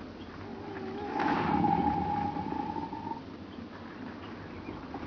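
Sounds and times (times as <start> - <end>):
crocodile growl: 0.4 - 3.2.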